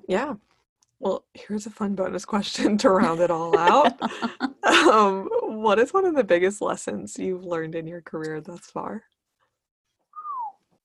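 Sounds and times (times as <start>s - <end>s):
speech: 0.1s - 9.1s
laughter: 3.0s - 4.9s
person whistling: 10.1s - 10.6s.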